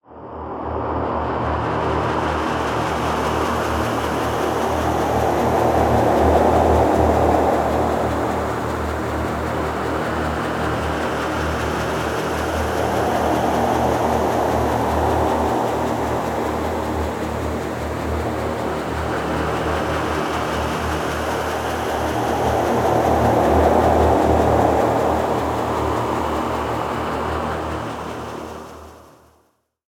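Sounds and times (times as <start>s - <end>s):
ambience: 0.1s - 29.1s.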